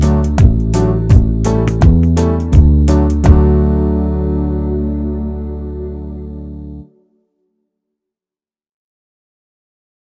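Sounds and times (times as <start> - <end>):
banjo backing track in the key of D: 0.0 - 5.4.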